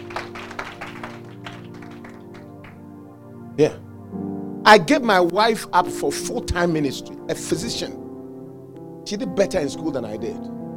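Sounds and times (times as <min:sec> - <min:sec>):
audience clapping: 0:00.0 - 0:02.9
speech: 0:03.6 - 0:08.0, 0:09.1 - 0:10.6.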